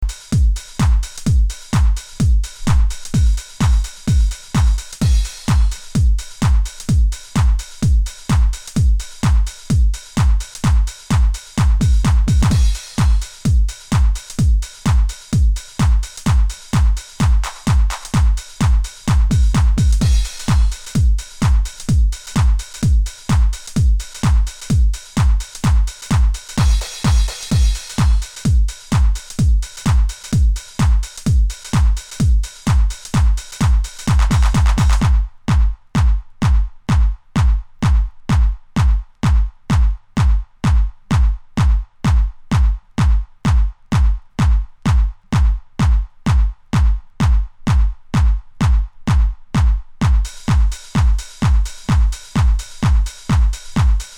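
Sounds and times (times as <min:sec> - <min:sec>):
drums: 0:00.0 - 0:54.1.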